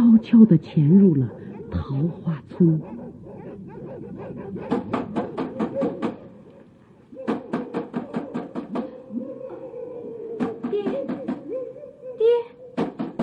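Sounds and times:
speech: 0.2s - 3.0s
knocking on a door: 4.2s - 6.3s, 7.3s - 9.0s, 10.4s - 11.5s, 12.8s - 13.2s.

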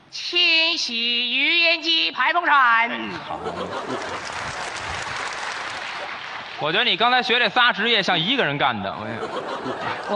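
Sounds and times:
speech: 0.1s - 4.6s, 6.6s - 10.1s
laughter: 3.1s - 6.1s, 8.8s - 10.1s
audience applause: 3.6s - 7.5s.

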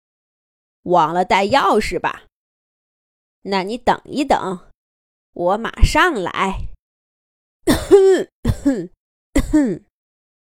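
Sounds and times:
speech: 0.8s - 2.3s, 3.4s - 4.7s, 5.3s - 6.7s, 7.6s - 9.9s
cough: 7.7s - 9.9s.

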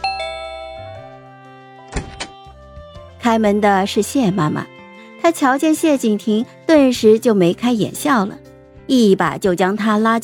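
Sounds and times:
electronic doorbell two-note ding-dong: 0.0s - 1.2s
speech: 3.3s - 10.2s.

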